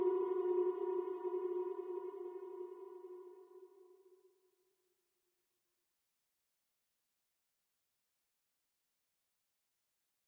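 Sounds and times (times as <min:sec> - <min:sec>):
sine wave tone: 0:00.0 - 0:03.8.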